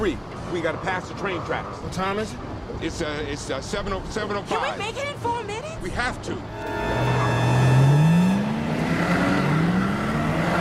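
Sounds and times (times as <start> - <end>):
speech: 0.0 - 6.9
car engine accelerating: 6.5 - 10.5.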